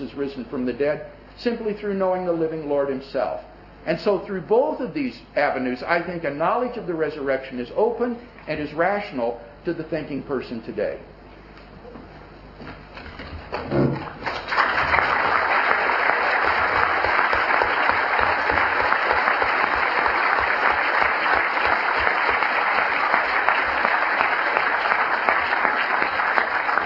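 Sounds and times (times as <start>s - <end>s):
speech: 0.1s - 11.1s
large audience applause: 14.0s - 26.8s.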